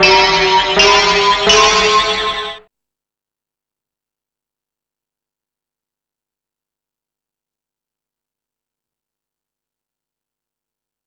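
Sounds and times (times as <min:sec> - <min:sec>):
hip house E-MU Pro-Cussion drum machine beat: 0:00.0 - 0:02.6.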